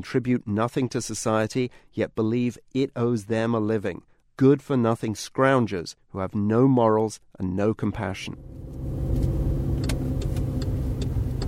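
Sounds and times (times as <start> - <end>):
speech: 0.0 - 9.0
car engine rumble driving through a housing project in Dewsbury: 8.4 - 11.4
faint light clicks and ticks: 9.8 - 11.4.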